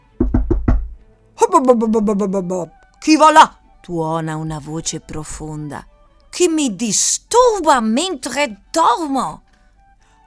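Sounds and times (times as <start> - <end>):
knocking on an enormous shoe sole: 0.0 - 1.0
speech: 1.6 - 9.4.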